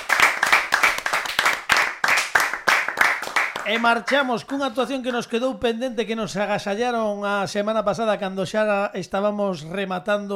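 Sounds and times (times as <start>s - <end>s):
loud crowd applause: 0.0s - 4.2s
speech: 3.7s - 10.3s.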